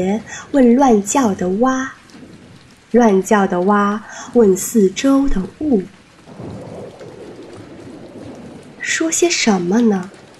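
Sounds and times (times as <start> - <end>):
speech: 0.0 - 2.0, 2.9 - 6.6, 8.8 - 10.2
rain: 0.0 - 10.3
thunder: 2.0 - 3.7, 6.2 - 10.3.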